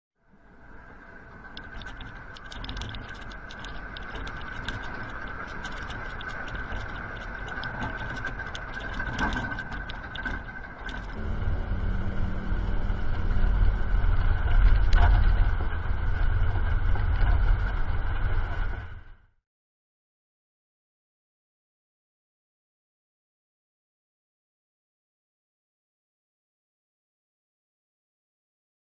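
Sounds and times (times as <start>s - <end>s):
earthquake in Japan: 1.0s - 19.2s.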